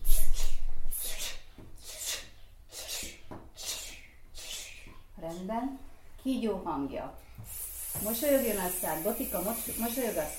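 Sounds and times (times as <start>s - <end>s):
child imitating a dripping tap: 0.0s - 5.0s, 7.4s - 10.3s
speech: 5.4s - 10.3s.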